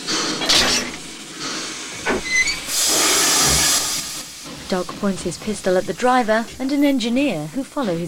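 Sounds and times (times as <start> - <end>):
steam locomotive venting steam while uncoupling: 0.0 - 8.0
sharp metallic clank of locomotive uncoupling: 0.2 - 1.0
speech: 4.7 - 8.0.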